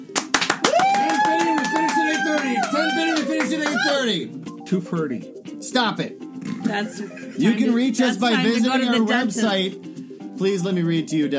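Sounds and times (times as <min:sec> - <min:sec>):
audience clapping: 0:00.0 - 0:04.2
speech: 0:02.8 - 0:11.3.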